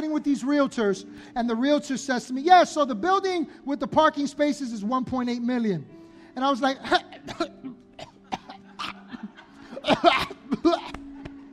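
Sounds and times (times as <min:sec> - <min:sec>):
speech: 0:00.1 - 0:07.6
person choking and coughing on something: 0:06.8 - 0:11.2.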